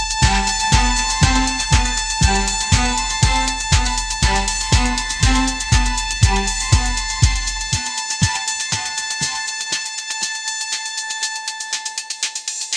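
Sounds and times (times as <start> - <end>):
upbeat pop melody: 0.2 - 9.4.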